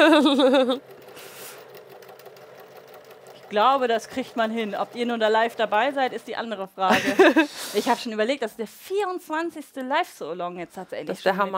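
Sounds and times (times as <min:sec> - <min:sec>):
laughter: 0:00.0 - 0:00.8, 0:06.9 - 0:07.8
speech: 0:00.0 - 0:01.0, 0:03.5 - 0:11.5
sewing machine stitching: 0:00.0 - 0:06.7.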